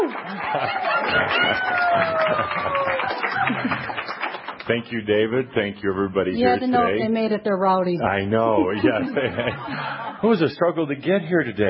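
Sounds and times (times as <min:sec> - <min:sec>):
laughter: 0:00.0 - 0:04.0, 0:08.4 - 0:10.4
audience applause: 0:00.0 - 0:04.8
speech: 0:00.5 - 0:11.6.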